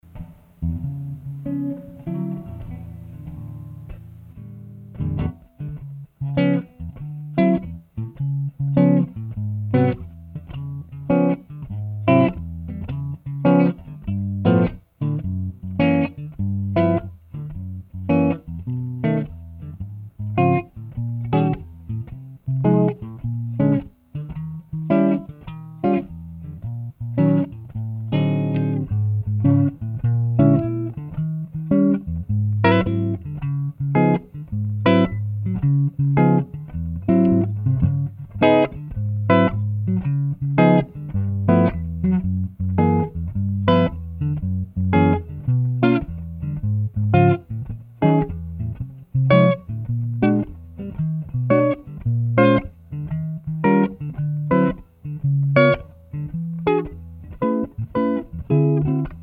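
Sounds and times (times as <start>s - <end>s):
solo guitar improvisation: 0.0s - 59.2s.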